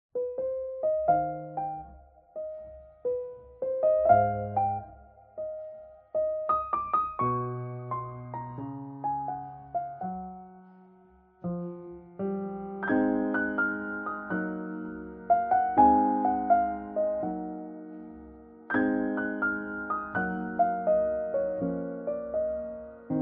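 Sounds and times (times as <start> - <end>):
piano cover: 0.2 - 23.2.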